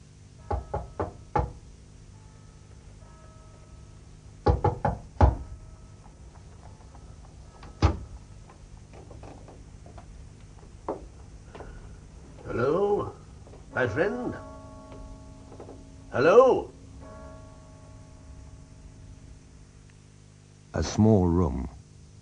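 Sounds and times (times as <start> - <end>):
knocking at a door: 0.5 - 1.6, 4.4 - 5.5, 7.8 - 8.0, 10.9 - 11.1
speech: 13.8 - 14.5, 16.2 - 16.7, 20.8 - 21.8.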